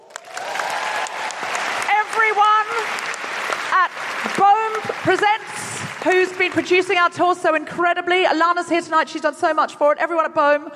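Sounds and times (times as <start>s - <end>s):
audience applause: 0.0s - 6.8s
speech: 6.0s - 10.7s.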